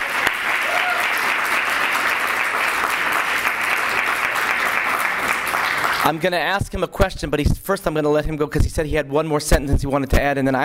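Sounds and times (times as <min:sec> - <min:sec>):
audience applause: 0:00.0 - 0:06.3
speech: 0:06.1 - 0:10.6.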